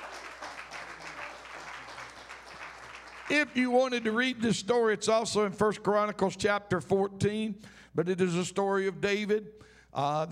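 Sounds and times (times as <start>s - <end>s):
audience hand clapping: 0.0s - 4.4s
speech: 3.3s - 10.3s.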